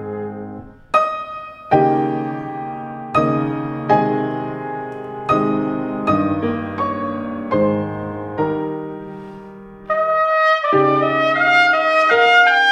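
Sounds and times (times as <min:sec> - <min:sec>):
trumpet: 0:00.0 - 0:03.3, 0:09.1 - 0:12.7
piano: 0:00.0 - 0:12.7.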